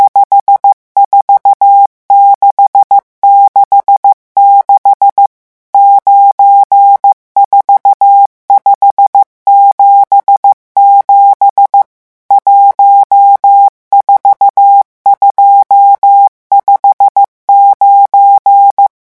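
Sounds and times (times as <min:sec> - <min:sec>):
morse code digits at speed 14: 0:00.0 - 0:18.9.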